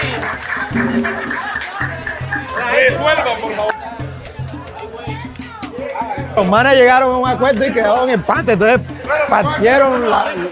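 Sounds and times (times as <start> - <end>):
audience applause: 0.0 - 3.8
laughter: 0.0 - 6.1
speech: 0.7 - 1.5, 6.4 - 10.5.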